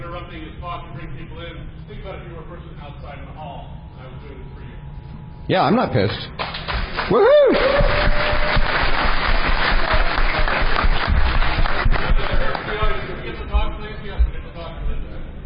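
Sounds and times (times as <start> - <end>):
speech: 0.3 - 4.9, 5.5 - 11.0
audience applauding and cheering in hall: 6.4 - 13.0.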